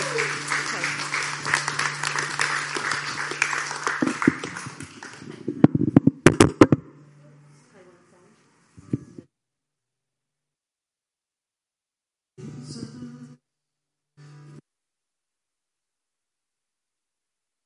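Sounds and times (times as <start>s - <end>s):
audience clapping: 0.0s - 5.9s.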